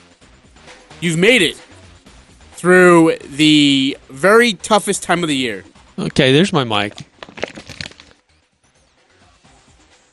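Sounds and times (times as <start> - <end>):
speech: 1.0 - 1.7, 2.6 - 7.1
paper being crumpled: 6.9 - 8.2.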